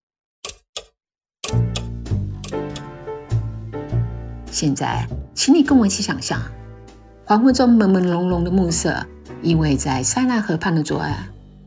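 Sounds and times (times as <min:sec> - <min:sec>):
crisp clock ticks: 0:00.4 - 0:02.9
rich sustained music: 0:01.5 - 0:11.6
speech: 0:04.6 - 0:06.6, 0:07.3 - 0:11.3.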